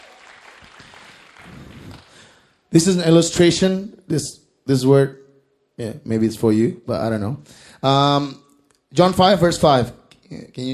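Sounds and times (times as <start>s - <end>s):
audience applause: 0.0s - 2.5s
speech: 2.7s - 5.2s, 5.8s - 10.7s.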